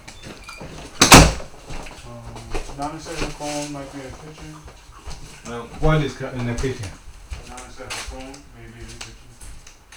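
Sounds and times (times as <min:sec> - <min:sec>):
door thud: 0:00.2 - 0:01.8
speech: 0:02.8 - 0:04.8, 0:05.5 - 0:07.0, 0:07.8 - 0:09.2.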